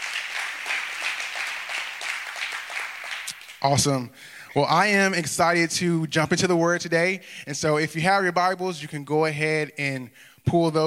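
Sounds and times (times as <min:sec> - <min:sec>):
audience hand clapping: 0:00.0 - 0:03.6
speech: 0:03.6 - 0:10.8.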